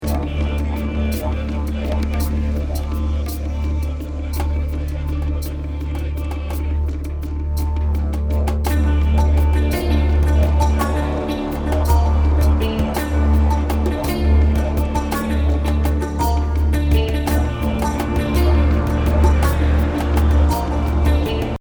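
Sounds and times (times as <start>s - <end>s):
chanting: 0.0s - 21.5s.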